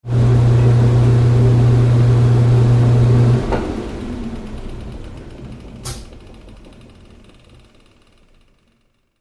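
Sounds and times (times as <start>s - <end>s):
washing machine rinsing: 0.1s - 6.4s.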